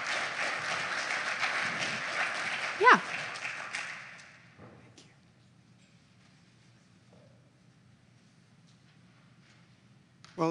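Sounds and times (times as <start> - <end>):
audience applause and cheering: 0.0 - 4.2
speech: 2.8 - 3.1.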